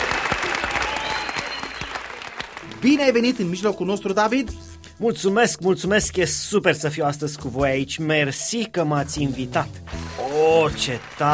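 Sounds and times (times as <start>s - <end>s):
faint voices and cheering from the studio audience: 0.0s - 2.3s
studio audience applause welcoming a guest: 0.0s - 3.7s, 9.9s - 11.3s
speech: 2.8s - 11.3s.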